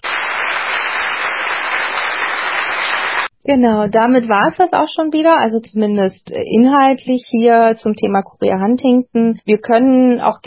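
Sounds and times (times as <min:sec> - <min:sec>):
applause sound effect: 0:00.0 - 0:03.3
speech: 0:03.5 - 0:10.4.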